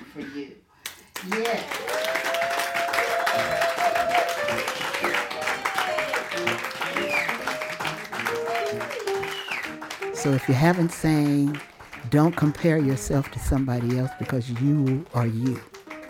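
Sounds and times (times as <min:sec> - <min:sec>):
audience applause: 0:01.1 - 0:16.0
high cheering and whooping voices: 0:01.3 - 0:09.6
speech: 0:10.2 - 0:15.7.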